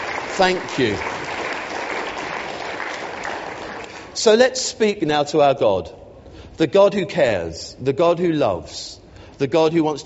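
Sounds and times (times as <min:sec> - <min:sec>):
audience clapping: 0:00.0 - 0:04.2
speech: 0:00.4 - 0:01.1, 0:04.2 - 0:06.0, 0:06.6 - 0:10.0.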